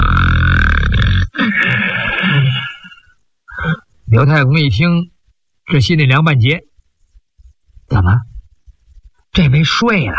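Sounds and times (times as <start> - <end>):
voice imitating loud snoring: 0.0 - 2.8
speech: 4.2 - 5.1, 5.7 - 6.7, 7.9 - 8.3, 9.3 - 10.1.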